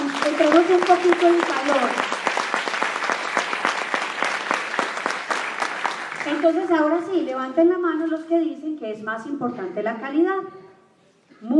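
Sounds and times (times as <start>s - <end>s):
audience applause: 0.0s - 6.6s
speech: 0.2s - 2.1s, 6.3s - 10.6s, 11.4s - 11.5s.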